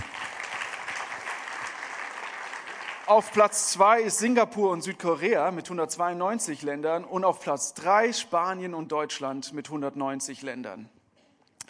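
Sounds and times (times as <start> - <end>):
crowd applauding: 0.0 - 3.8
speech: 3.1 - 11.0.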